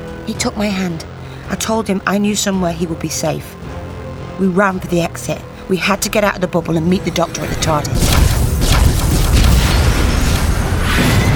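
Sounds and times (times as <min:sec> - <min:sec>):
speech: 0:00.3 - 0:03.6, 0:04.4 - 0:08.2
explosions during spaceship attack: 0:07.4 - 0:11.3.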